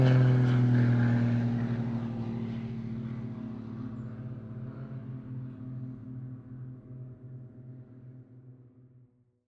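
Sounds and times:
Extra Flugzeugbau EA300 aircraft performing airshow acrobatics close by: 0.0 - 6.0.

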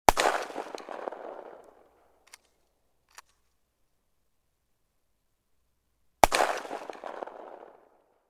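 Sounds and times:
gun model 12: 0.1 - 1.6, 6.2 - 7.6.

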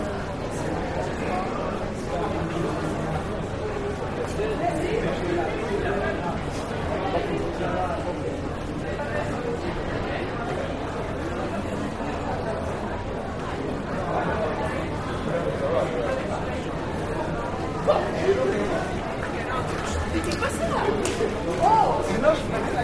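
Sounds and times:
street crowd walla at Strasbourg Cathedral in France: 0.0 - 22.8.

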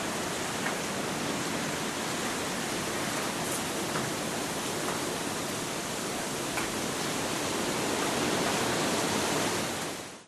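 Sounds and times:
strong storm wind in tall trees: 0.0 - 10.2.

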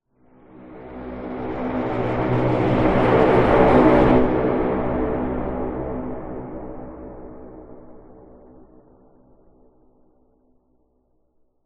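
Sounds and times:
dark airy blowing pipe drone with big reverb: 0.5 - 7.8.

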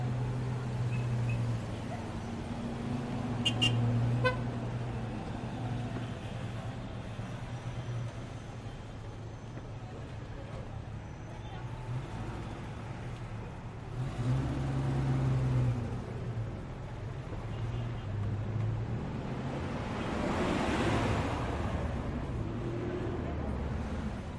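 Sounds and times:
street traffic: 0.0 - 24.3
honking: 3.4 - 4.4.

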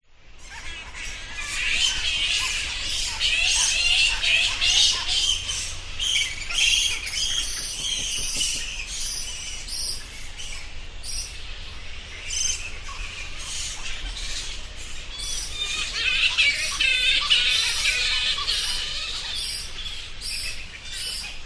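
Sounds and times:
bats squeaking: 0.5 - 11.4, 12.2 - 21.4.

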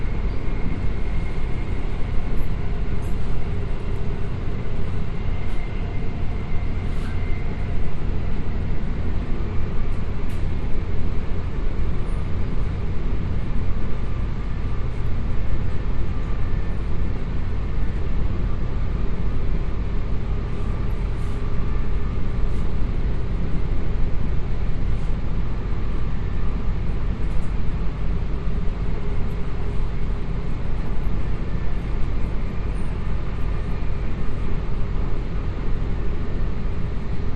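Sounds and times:
QLD Rail train moving heard from inside: 0.0 - 37.3.

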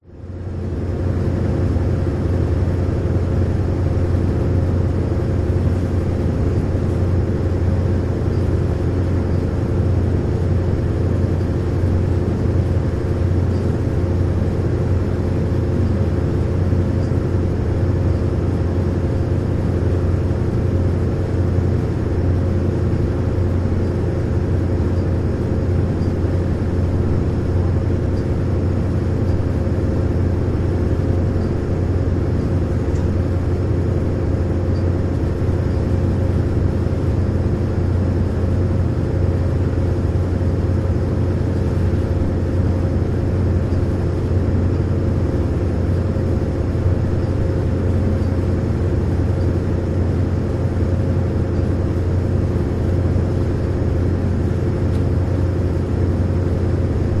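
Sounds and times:
ferry engines heard from top deck: 0.0 - 57.1.

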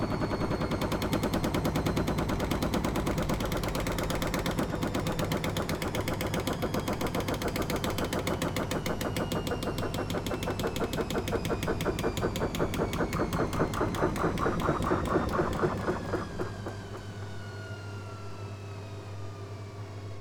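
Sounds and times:
household washing machine on full spin: 0.0 - 19.4.

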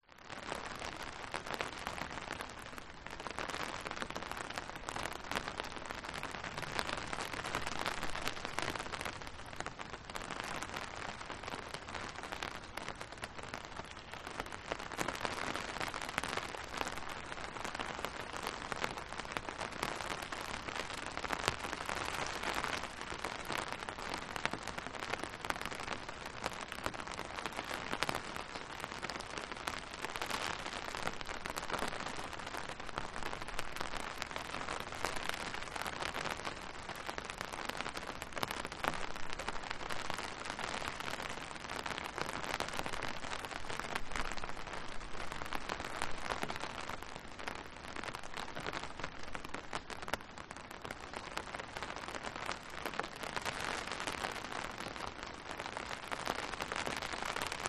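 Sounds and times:
light rain on umbrella: 0.0 - 57.6.

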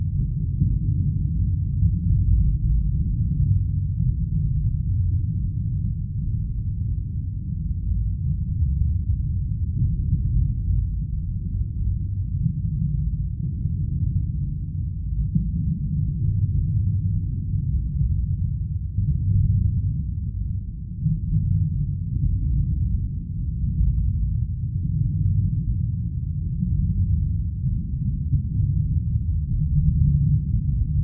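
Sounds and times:
underwater water rumbling: 0.0 - 31.0.

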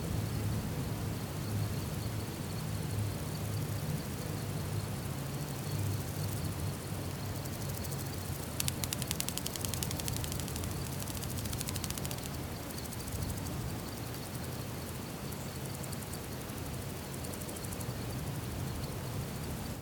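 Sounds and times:
countryside insects in Texas: 0.0 - 19.7
countryside birds in Texas: 7.6 - 13.2.

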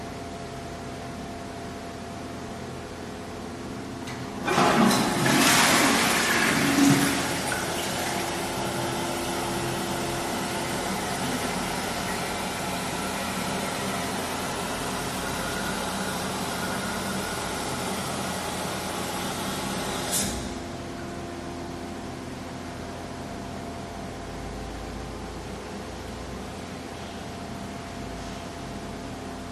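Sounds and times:
public toilet fan: 0.0 - 29.5
toilet flushing in next cubicle: 4.1 - 20.6.

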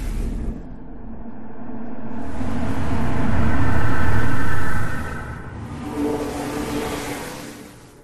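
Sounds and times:
glitchy ambience loop: 0.2 - 8.0.

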